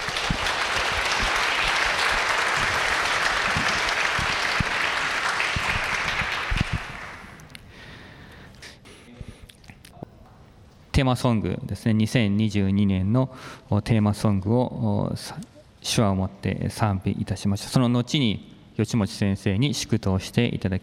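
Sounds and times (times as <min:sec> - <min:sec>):
audience applause of thanks: 0:00.0 - 0:07.4
speech: 0:11.0 - 0:20.8.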